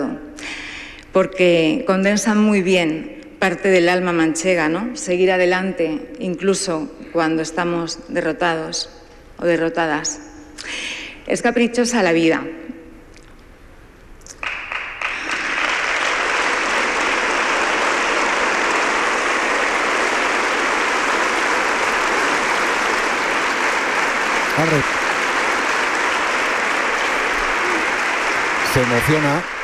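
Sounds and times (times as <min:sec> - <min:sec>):
speech: 0:01.2 - 0:12.7, 0:29.0 - 0:29.6
audience applause and ovation: 0:14.4 - 0:29.6.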